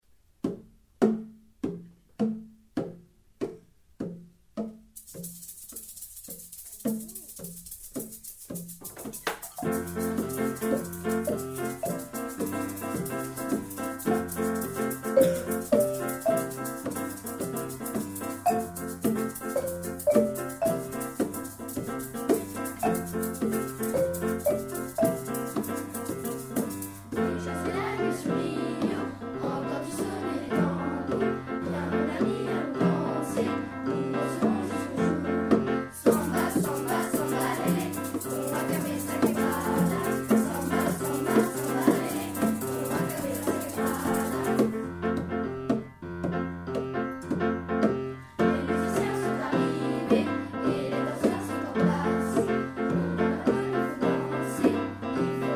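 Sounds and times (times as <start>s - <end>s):
samba song: 0.5s - 55.5s.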